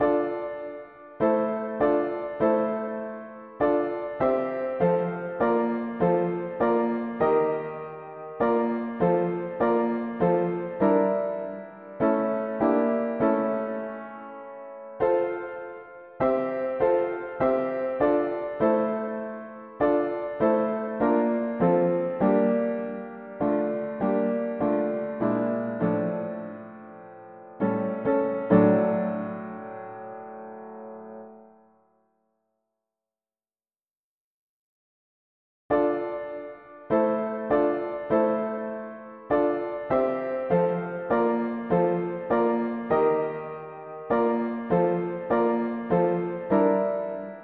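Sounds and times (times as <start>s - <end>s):
mono piano playing hymns: 0.0s - 31.8s, 35.7s - 47.4s.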